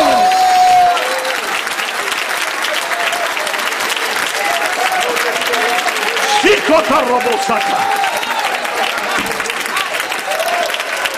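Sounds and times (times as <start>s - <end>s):
audience shouting: 0.0s - 1.5s, 4.3s - 11.1s
audience clapping: 0.0s - 11.1s
speech: 6.8s - 8.2s.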